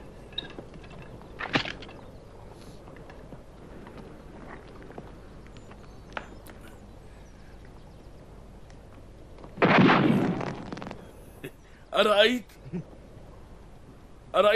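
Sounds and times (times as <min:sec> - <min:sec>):
gunshot fired in the mountains during an aiming lesson: 0:09.6 - 0:11.1
person talking: 0:11.9 - 0:12.8, 0:14.4 - 0:14.5.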